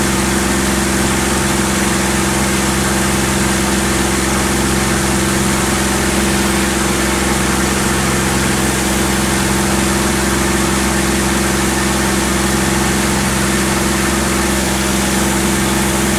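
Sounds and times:
CAC CA-18 Mustang Mk23 propeller aircraft flying, heard from interior: 0.0s - 16.1s.

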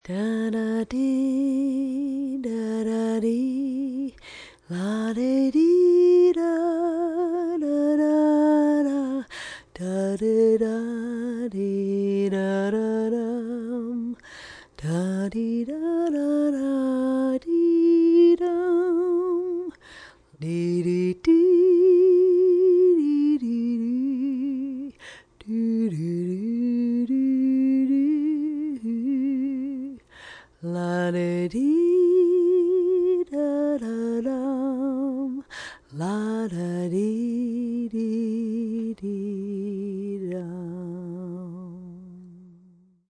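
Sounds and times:
woman singing a lullaby: 0.0s - 43.1s.

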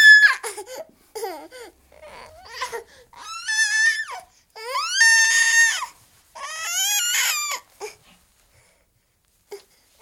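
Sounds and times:
12 month old baby boy screaming in a temper: 0.0s - 0.5s, 2.1s - 7.7s.

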